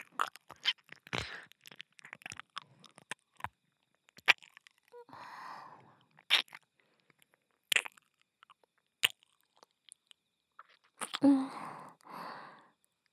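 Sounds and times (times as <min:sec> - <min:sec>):
ear licking on the left: 0:00.0 - 0:05.1, 0:06.1 - 0:11.3.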